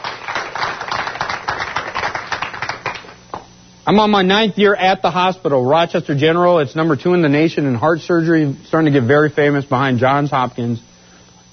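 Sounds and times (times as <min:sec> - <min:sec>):
audience applause: 0:00.0 - 0:03.2
speech: 0:03.9 - 0:10.9.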